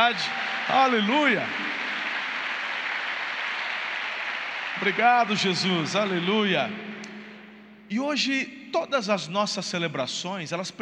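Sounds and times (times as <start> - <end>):
speech: 0.0 - 1.8, 4.8 - 7.0, 7.9 - 10.8
audience applause: 0.0 - 6.7.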